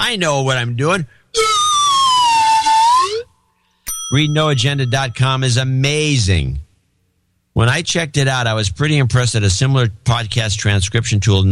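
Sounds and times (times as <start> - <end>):
speech: 0.0 - 1.6, 4.1 - 6.6, 7.6 - 11.5
slide whistle: 1.4 - 3.9.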